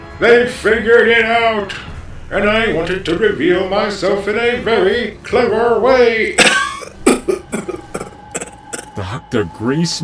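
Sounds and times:
speech: 0.2s - 7.0s, 9.3s - 10.0s
coughing fit: 6.4s - 9.0s.

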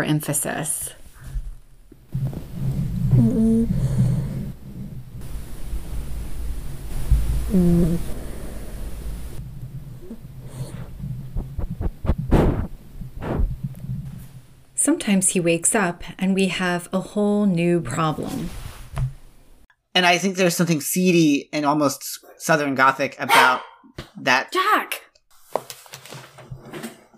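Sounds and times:
speech: 0.0s - 1.0s, 7.5s - 8.2s, 15.1s - 18.6s, 20.0s - 25.0s
dog snoring: 2.1s - 5.3s, 6.9s - 14.1s
steady low rumble: 2.1s - 14.8s.

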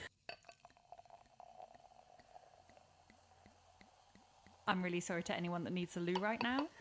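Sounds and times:
cork popping: 0.2s - 4.7s
speech: 4.7s - 6.7s.

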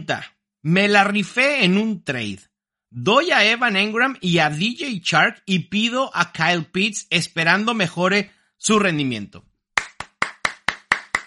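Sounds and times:
speech: 0.0s - 9.5s
applause: 9.8s - 11.2s.

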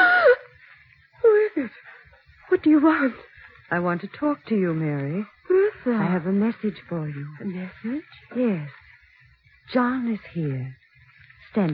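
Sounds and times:
woman's stifled scream: 0.0s - 0.5s
speech: 2.6s - 8.8s, 9.7s - 10.8s, 11.5s - 11.7s.

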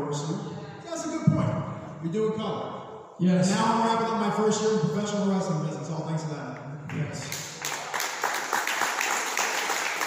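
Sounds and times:
speech: 0.1s - 0.5s, 2.0s - 7.4s
audience clapping: 6.9s - 10.0s.

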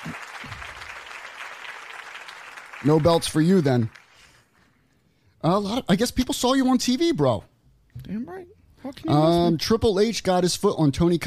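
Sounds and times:
round of applause: 0.0s - 4.8s
speech: 2.8s - 4.0s, 5.4s - 11.2s.

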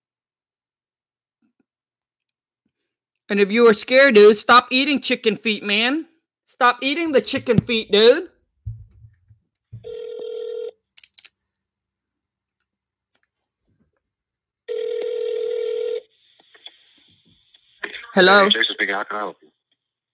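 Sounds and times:
speech: 3.3s - 8.3s, 18.2s - 19.4s
phone ringback tones while waiting for pickup: 9.8s - 10.7s, 14.7s - 16.0s.

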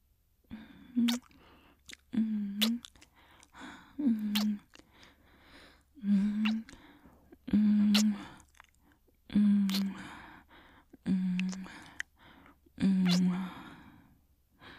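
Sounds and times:
soft wet kisses in an intimate romantic roleplay: 1.0s - 3.6s, 4.2s - 5.0s, 6.2s - 6.9s, 7.8s - 8.9s, 9.6s - 10.0s, 11.3s - 12.1s, 13.0s - 13.4s.

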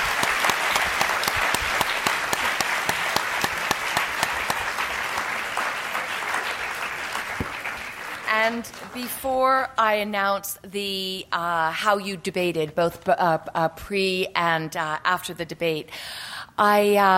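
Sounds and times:
round of applause for debaters: 0.0s - 9.0s
speech: 8.5s - 17.1s.

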